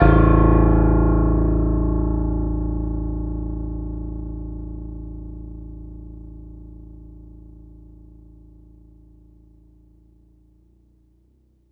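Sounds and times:
piano: 0:00.0 - 0:08.9.

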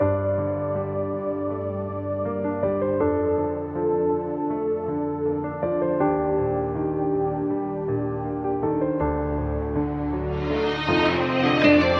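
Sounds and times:
sad keyboard music: 0:00.0 - 0:11.9.

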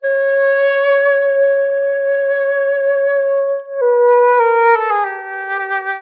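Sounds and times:
sad flute loop: 0:00.0 - 0:06.0.

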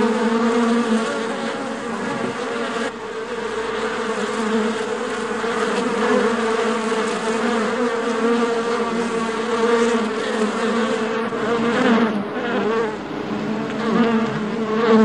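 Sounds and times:
bees buzzing in a hive: 0:00.0 - 0:15.0.

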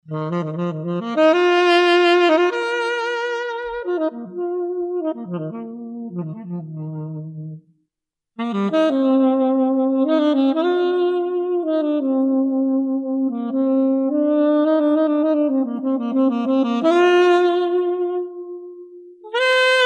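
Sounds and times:
mysterious saxophone: 0:00.0 - 0:07.6, 0:08.4 - 0:19.8.

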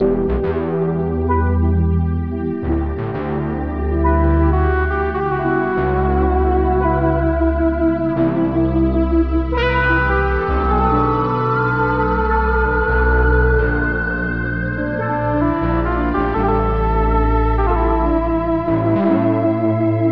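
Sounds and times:
electronic vaporwave funk loop: 0:00.0 - 0:20.0.

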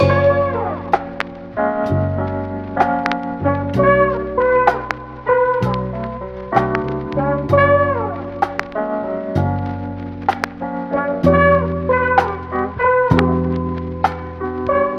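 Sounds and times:
horns: 0:00.0 - 0:09.9, 0:10.9 - 0:14.9.

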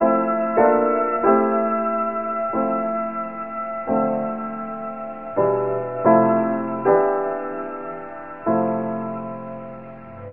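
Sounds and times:
sad piano loop: 0:00.0 - 0:10.3.

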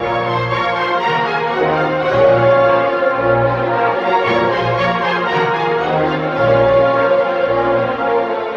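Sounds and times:
sad horns: 0:00.0 - 0:08.5.

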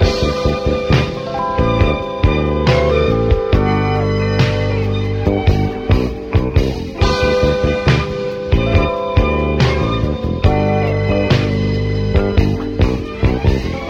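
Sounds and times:
phonk music loop: 0:00.0 - 0:13.8.

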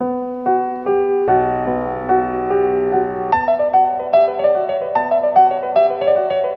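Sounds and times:
sad piano: 0:00.0 - 0:06.5.

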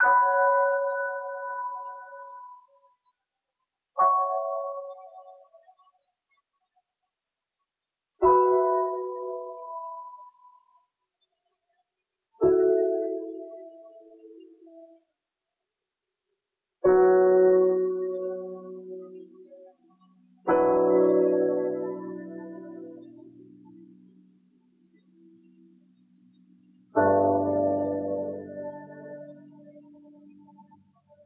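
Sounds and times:
sad piano: 0:00.0 - 0:02.6, 0:08.2 - 0:10.4, 0:12.4 - 0:14.8, 0:16.9 - 0:31.2.

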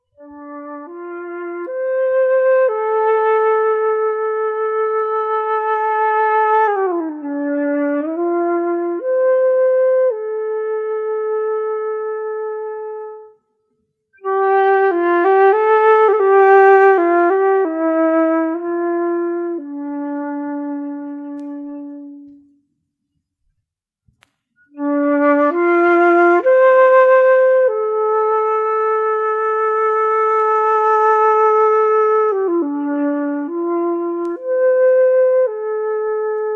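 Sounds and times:
flute playing: 0:00.0 - 0:13.4, 0:14.2 - 0:22.7, 0:24.6 - 0:36.5.

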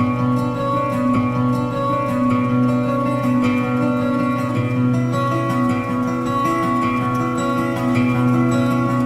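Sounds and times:
sad guitar music: 0:00.0 - 0:09.0.

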